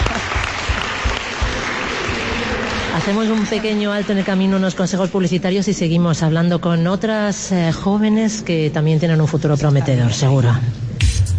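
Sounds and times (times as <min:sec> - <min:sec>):
audience applause at a civic event: 0:00.0 - 0:04.8
speech: 0:03.0 - 0:10.8.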